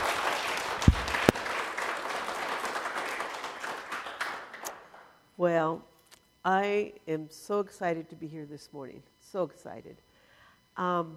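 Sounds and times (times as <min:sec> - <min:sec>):
congregation applauding to welcome a guest speaker: 0:00.0 - 0:05.1
speech: 0:05.4 - 0:10.1, 0:10.8 - 0:11.1.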